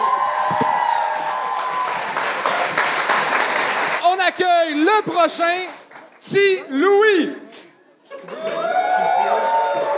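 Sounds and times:
audience applause: 0.0s - 4.7s, 8.4s - 9.9s
speech: 4.4s - 7.4s.

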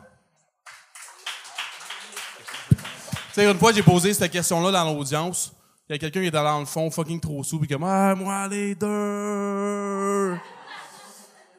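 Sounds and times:
audience applause: 0.6s - 4.2s
speech: 3.4s - 10.5s
laughter: 8.8s - 11.5s.

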